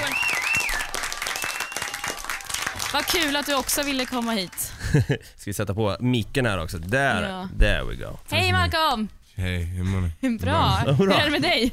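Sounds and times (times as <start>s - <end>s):
studio audience applause: 0.0s - 4.6s
speech: 2.9s - 11.7s.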